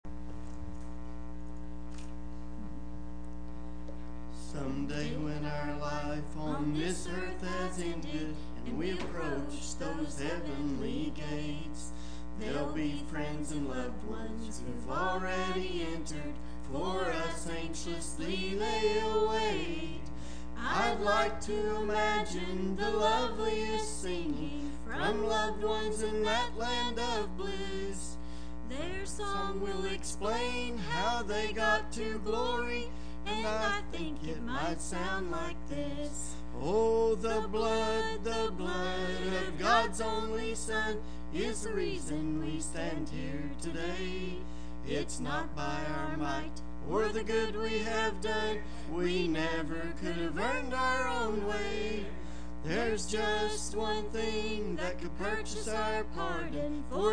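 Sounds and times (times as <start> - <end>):
family singing: 4.4 - 57.1.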